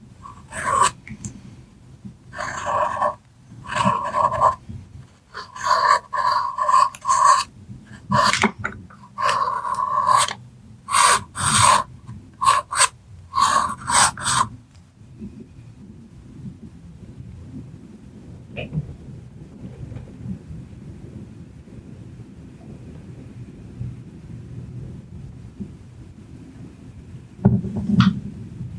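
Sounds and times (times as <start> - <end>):
pencils scratching and tracing on paper: 0.2 - 1.0, 2.4 - 14.5.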